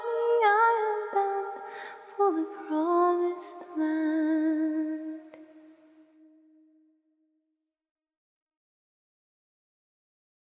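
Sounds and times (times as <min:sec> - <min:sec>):
a cappella hymn singing: 0:00.0 - 0:05.8.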